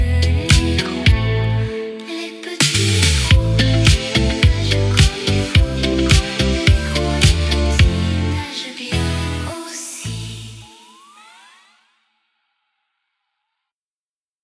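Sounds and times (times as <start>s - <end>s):
French children's nursery song karaoke: 0.0s - 11.4s.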